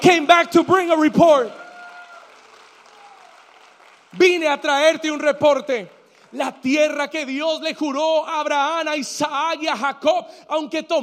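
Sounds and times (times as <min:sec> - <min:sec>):
speech: 0:00.0 - 0:01.6, 0:04.2 - 0:11.0
audience applause: 0:00.0 - 0:06.6.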